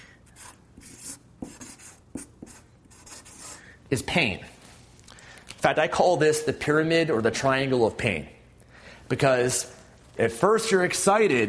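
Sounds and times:
pen strokes drawing in a different color: 0.3s - 3.6s
speech: 3.9s - 4.6s, 5.6s - 8.4s, 9.1s - 11.4s.

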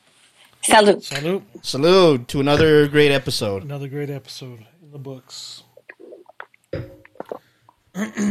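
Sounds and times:
speech: 0.7s - 5.7s, 6.7s - 7.4s, 8.0s - 8.2s
soft wet mouth clicks: 5.7s - 7.9s
big throaty gulp while drinking: 5.7s - 8.2s.

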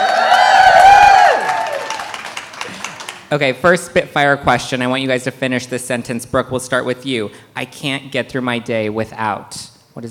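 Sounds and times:
loud crowd cheering: 0.0s - 3.3s
speech: 3.3s - 10.0s.

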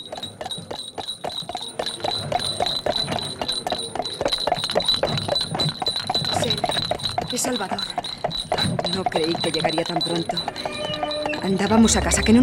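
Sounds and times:
horse-drawn carriage hooves clip-clopping: 0.0s - 12.4s
speech: 7.4s - 8.0s, 8.9s - 10.8s, 11.4s - 12.4s.

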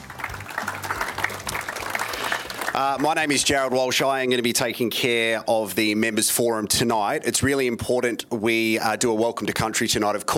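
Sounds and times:
audience applause: 0.0s - 4.0s
speech: 2.8s - 10.3s.

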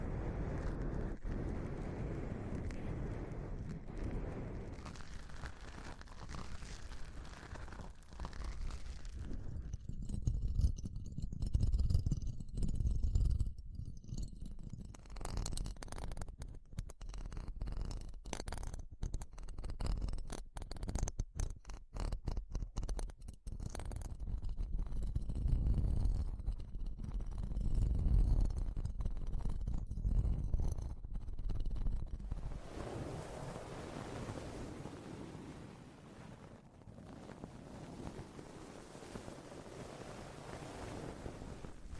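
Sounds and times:
smooth steady hiss: 0.0s - 9.6s, 32.2s - 36.6s, 37.2s - 41.9s
microphone handling rumble: 0.0s - 10.4s, 31.9s - 41.9s
crackling and scraping clicks: 0.1s - 32.6s.

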